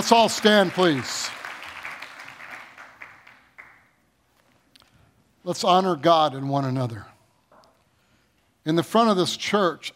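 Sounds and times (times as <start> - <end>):
speech: 0.0 - 1.4, 5.4 - 7.1, 8.7 - 9.9
audience clapping: 0.0 - 4.0.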